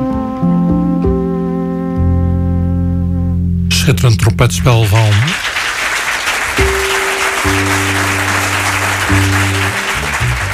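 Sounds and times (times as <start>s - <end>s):
sustained low instrumental tones: 0.0s - 5.2s, 6.6s - 10.5s
speech: 3.9s - 5.6s
studio audience applause at the Jazzhuis Montmartre in Copenhagen: 4.6s - 10.5s.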